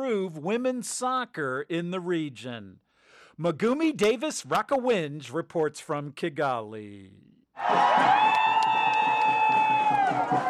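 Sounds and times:
speech: 0.0 - 2.8, 3.4 - 8.4
Rwandan soccer fans cheering their team: 7.6 - 10.4.

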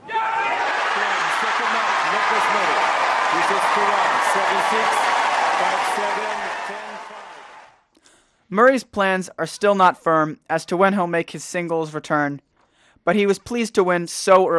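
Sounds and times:
tennis crowd applause after match point: 0.4 - 7.8
speech: 4.4 - 6.4, 8.5 - 14.5.

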